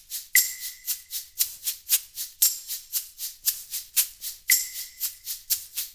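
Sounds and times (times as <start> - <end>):
percussion loop: 0.2 - 1.6, 4.0 - 5.9.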